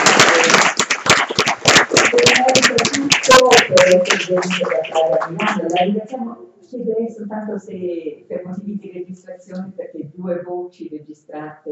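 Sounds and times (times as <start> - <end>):
audience applause: 0.0 - 5.8
speech: 3.9 - 11.6.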